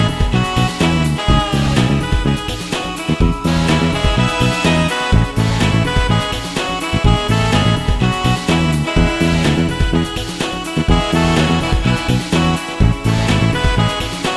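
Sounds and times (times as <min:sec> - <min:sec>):
funk music: 0:00.0 - 0:14.3.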